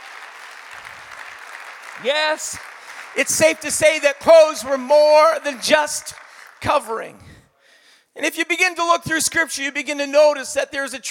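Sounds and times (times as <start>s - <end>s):
audience clapping hands: 0.0s - 7.2s
speech: 2.0s - 7.3s, 8.2s - 11.0s.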